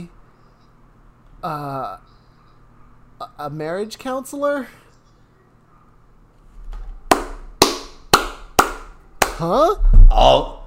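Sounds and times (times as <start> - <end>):
speech: 1.4 - 2.1, 3.2 - 4.8, 9.4 - 10.6
person clapping hands: 7.1 - 9.5.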